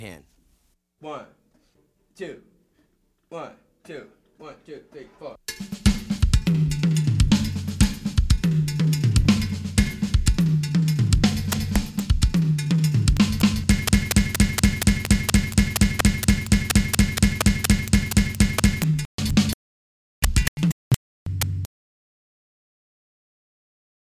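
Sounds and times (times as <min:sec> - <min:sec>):
Afro-Cuban drum groove: 0:05.5 - 0:19.5, 0:20.2 - 0:20.7
Afro-Cuban bass groove: 0:11.0 - 0:19.5, 0:20.2 - 0:21.7.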